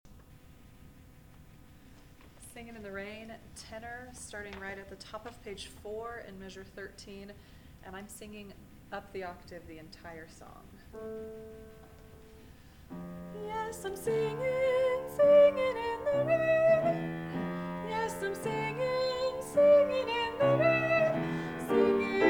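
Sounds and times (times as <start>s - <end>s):
tenor singing: 13.0s - 22.2s.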